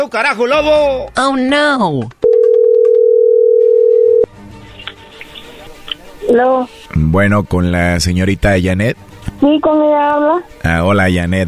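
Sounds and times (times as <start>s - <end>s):
speech: 0.0s - 2.2s, 6.3s - 11.4s
telephone dial tone while placing call: 2.2s - 4.3s.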